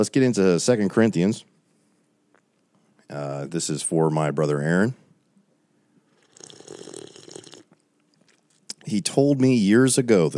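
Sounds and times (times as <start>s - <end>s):
speech: 0.0s - 1.5s, 3.1s - 5.0s, 8.9s - 10.3s
sipping coffee: 6.1s - 8.7s.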